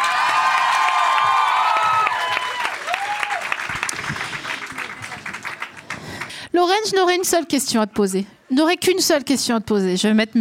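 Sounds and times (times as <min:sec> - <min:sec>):
audience cheering: 0:00.0 - 0:05.7
audience applause: 0:00.0 - 0:06.4
speech: 0:06.6 - 0:10.4.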